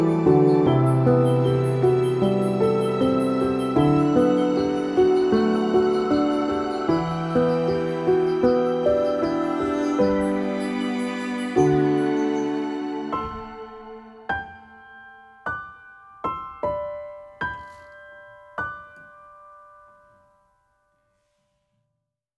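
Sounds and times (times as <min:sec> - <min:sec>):
background music: 0:00.0 - 0:15.4.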